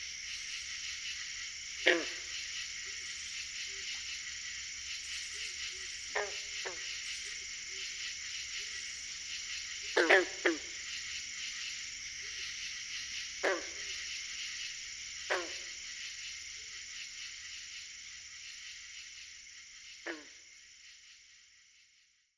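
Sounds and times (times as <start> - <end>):
green frogs calling: 0.0 - 17.2, 20.0 - 20.5
insect chorus: 0.0 - 22.3.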